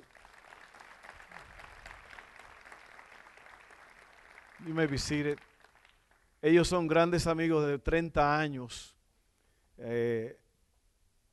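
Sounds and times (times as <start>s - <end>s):
audience applause: 0.0s - 6.4s
speech: 4.6s - 5.5s, 6.4s - 9.0s, 9.8s - 10.4s.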